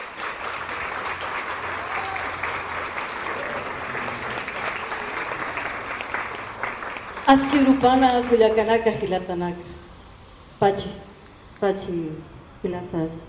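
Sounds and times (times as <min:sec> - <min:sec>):
audience applauding a speaker at a public event: 0:00.0 - 0:08.8
speech: 0:07.3 - 0:09.7, 0:10.6 - 0:11.0, 0:11.6 - 0:13.2.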